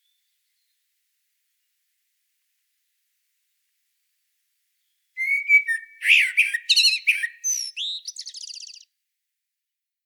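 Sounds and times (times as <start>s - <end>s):
common blackbird Turdus merula singing flute-like notes and scratchy twitters: 5.2s - 8.8s.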